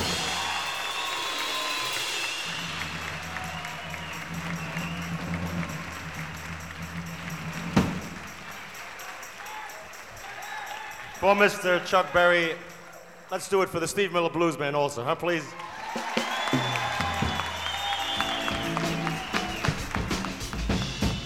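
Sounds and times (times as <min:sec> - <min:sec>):
audience applause: 0:00.0 - 0:12.2, 0:15.5 - 0:21.2
speech: 0:11.2 - 0:12.7, 0:13.3 - 0:15.6.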